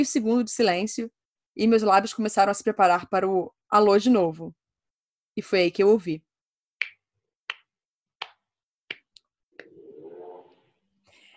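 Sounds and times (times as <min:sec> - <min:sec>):
speech: 0:00.0 - 0:04.6, 0:05.4 - 0:06.3
slow clapping over a telephone line: 0:06.8 - 0:09.8.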